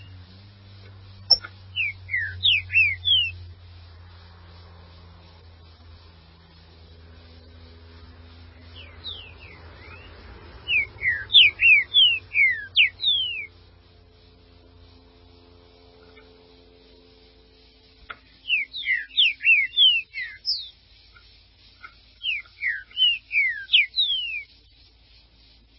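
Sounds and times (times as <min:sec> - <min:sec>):
steady low hum: 0:00.0 - 0:25.7
Green-winged saltator song: 0:01.2 - 0:03.6, 0:08.5 - 0:13.7, 0:18.2 - 0:21.2, 0:21.8 - 0:24.7.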